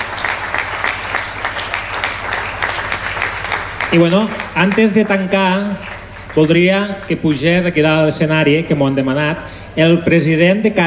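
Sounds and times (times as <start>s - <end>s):
loud audience applause: 0.0s - 7.1s
speech: 3.9s - 10.8s.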